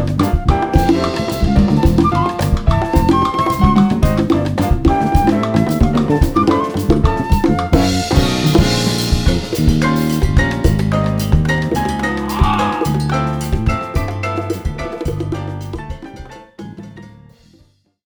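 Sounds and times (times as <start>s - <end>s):
Latin jazz music: 0.0s - 18.0s.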